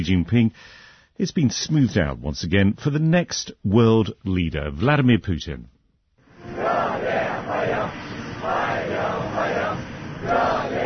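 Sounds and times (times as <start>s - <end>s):
speech: 0.0s - 5.7s
young people in blue shirts and white trousers chanting to welcome Vladimir Putin in Beijing: 6.4s - 10.8s.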